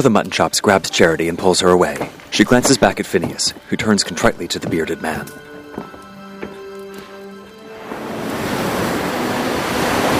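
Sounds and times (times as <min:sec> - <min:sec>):
speech: 0:00.0 - 0:05.5
ocean waves on a beach: 0:07.6 - 0:10.1.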